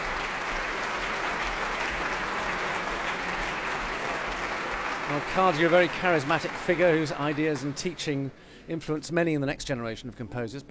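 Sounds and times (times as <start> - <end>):
concert audience applause in the Royal Albert Hall: 0.0 - 8.3
speech: 5.1 - 10.7.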